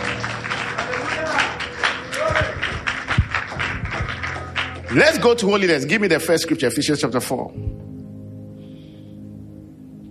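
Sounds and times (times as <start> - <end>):
audience clapping hands: 0.0 - 7.4
speech: 4.9 - 7.8.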